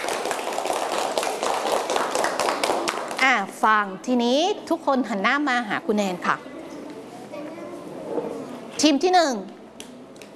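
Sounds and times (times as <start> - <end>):
group clapping hands: 0.0 - 3.4
speech: 3.6 - 6.5, 8.8 - 9.6.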